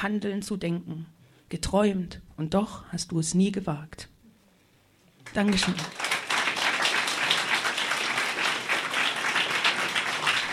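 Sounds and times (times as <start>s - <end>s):
speech: 0.0s - 4.1s, 5.3s - 6.0s
audience applause: 5.3s - 10.5s.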